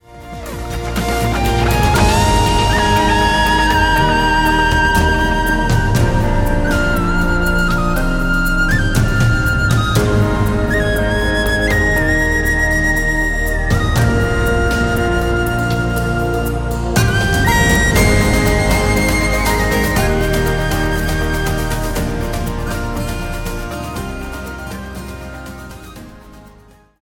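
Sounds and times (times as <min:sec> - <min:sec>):
inspiring soaring aerial music: 0:00.0 - 0:27.0.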